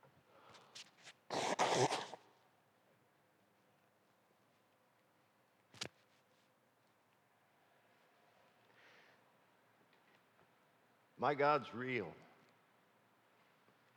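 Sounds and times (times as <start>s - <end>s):
person blowing nose: 1.3s - 2.2s
speech: 11.2s - 12.2s.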